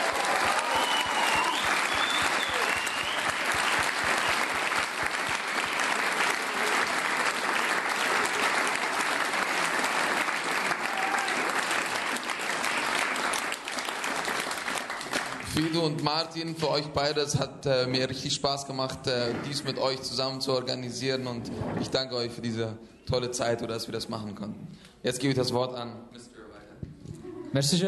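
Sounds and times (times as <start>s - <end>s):
faint whistles and cheers: 0.0s - 4.7s, 10.7s - 11.6s
large audience applause: 0.0s - 15.9s
speech: 15.9s - 26.3s, 27.6s - 27.8s.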